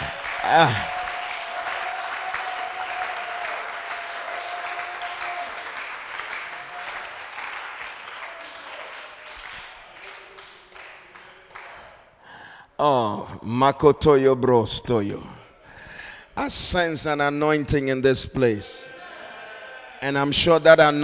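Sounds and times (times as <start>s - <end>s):
audience clapping: 0.0s - 12.1s
speech: 0.5s - 0.9s, 12.8s - 15.3s, 16.5s - 18.9s, 20.0s - 21.0s.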